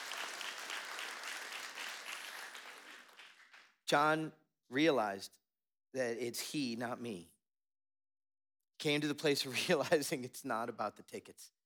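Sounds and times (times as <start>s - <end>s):
audience applause: 0.0s - 3.7s
speech: 3.9s - 7.3s, 8.8s - 11.6s.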